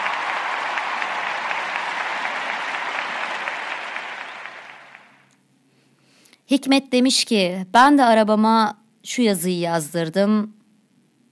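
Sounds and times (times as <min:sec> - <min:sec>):
applause: 0:00.0 - 0:05.3
speech: 0:06.5 - 0:10.6.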